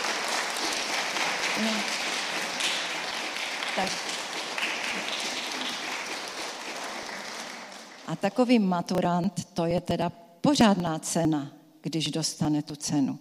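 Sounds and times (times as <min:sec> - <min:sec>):
audience applause: 0:00.0 - 0:08.3
speech: 0:01.6 - 0:02.0, 0:03.8 - 0:04.1, 0:08.2 - 0:13.2.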